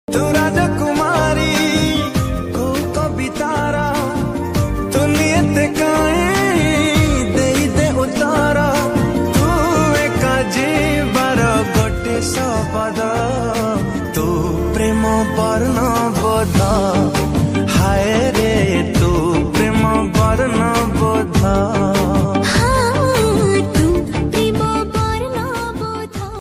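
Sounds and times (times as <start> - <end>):
Odia romantic love ringtone music: 0.1 - 26.4.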